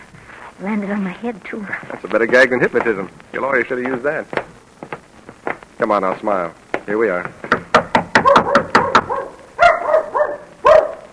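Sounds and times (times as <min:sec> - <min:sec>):
speech: 0:00.6 - 0:04.5, 0:05.8 - 0:07.5
sharp knocking: 0:03.8 - 0:09.2
dog barking: 0:08.2 - 0:11.1.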